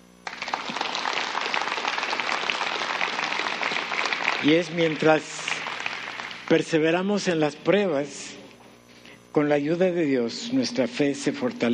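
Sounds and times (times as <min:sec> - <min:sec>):
audience applauding: 0:00.2 - 0:06.6
speech: 0:04.4 - 0:05.4, 0:06.5 - 0:08.4, 0:09.3 - 0:11.7.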